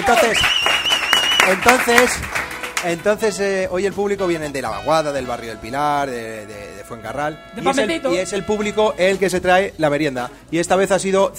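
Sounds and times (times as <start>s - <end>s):
live radio show studio audience clapping: 0.0s - 3.0s
speech: 0.1s - 0.8s, 1.5s - 11.3s
high sustained whistle: 0.3s - 1.7s.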